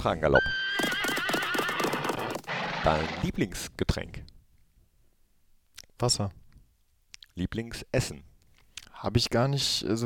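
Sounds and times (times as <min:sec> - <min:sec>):
speech: 0:00.0 - 0:00.9, 0:02.8 - 0:04.3, 0:06.0 - 0:06.4, 0:07.4 - 0:08.3, 0:09.0 - 0:10.0
high wavering horse whinny: 0:00.4 - 0:03.4
horse galloping with clip-clop of hooves: 0:00.7 - 0:02.8.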